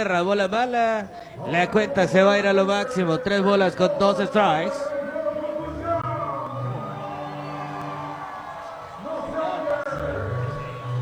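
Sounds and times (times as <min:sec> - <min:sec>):
speech: 0:00.0 - 0:04.9
baseball crowd cheering to pressure the pitcher: 0:01.4 - 0:11.0.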